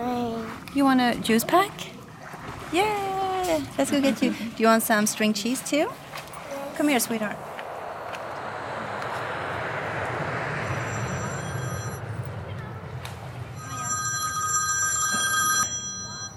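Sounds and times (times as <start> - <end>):
speech: 0.8 - 1.9, 2.7 - 6.0, 6.8 - 7.5
engine noise: 5.4 - 15.8
ringback tones on an outgoing phone call: 10.8 - 12.0, 13.6 - 16.3.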